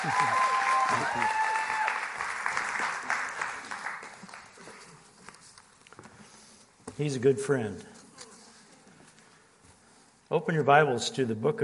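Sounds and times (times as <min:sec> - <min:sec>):
speech: 0:00.0 - 0:01.6, 0:07.0 - 0:08.0, 0:10.3 - 0:11.6
church congregation applauding to welcome a guest pastor: 0:00.0 - 0:05.0.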